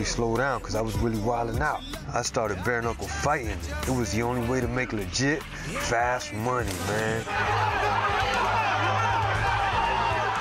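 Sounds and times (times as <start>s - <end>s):
speech: 0.0s - 8.6s
crowd chanting a fighter's name at the Hard Rock Casino: 6.6s - 10.3s.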